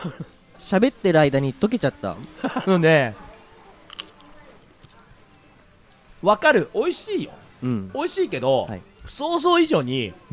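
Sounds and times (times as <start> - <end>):
speech: 0.0 - 3.2, 6.2 - 10.3
faint chewing: 0.0 - 10.3
laughter: 0.0 - 10.3
crisp crunch biting into thawing frozen grilled eel kabayaki: 3.9 - 4.3.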